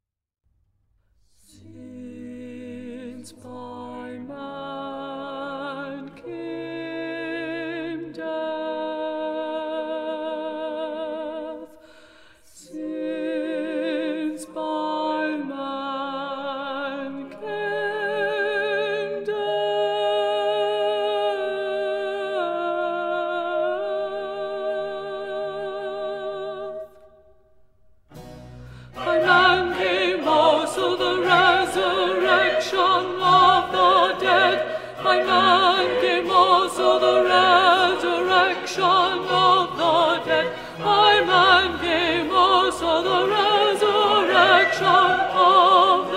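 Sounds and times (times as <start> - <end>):
contraltos singing: 1.4 - 11.8, 12.6 - 27.1, 28.7 - 46.1.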